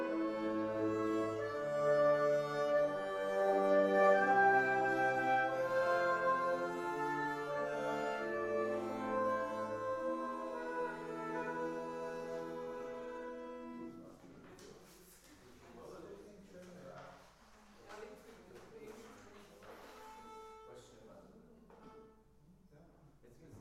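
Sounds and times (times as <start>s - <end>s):
instrument from a church: 0.0s - 15.3s, 19.4s - 22.6s.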